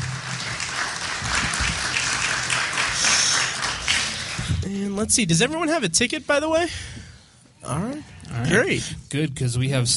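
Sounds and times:
audience applause: 0.0 - 4.6
speech: 4.7 - 7.0, 7.7 - 9.9.

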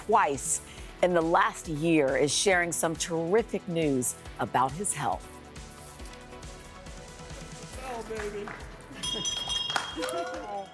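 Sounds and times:
speech: 0.1 - 5.3, 8.1 - 10.7
bell ringing: 9.0 - 10.7.

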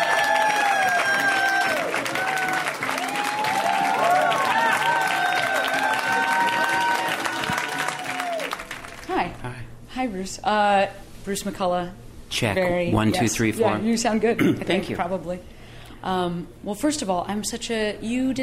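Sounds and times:
people whooping: 0.0 - 9.0
audience applauding a comedian coming on stage: 0.0 - 9.2
speech: 10.0 - 18.4.

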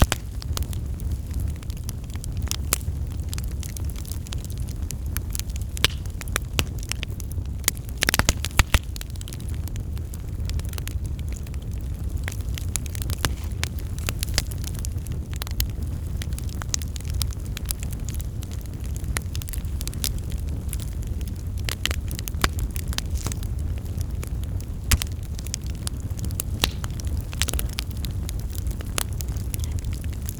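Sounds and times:
fire crackling: 0.0 - 30.3
low deep rumble of burning: 0.0 - 30.3
fire pops and snaps: 5.8 - 6.8, 8.0 - 9.0, 24.8 - 25.2, 26.5 - 27.6.

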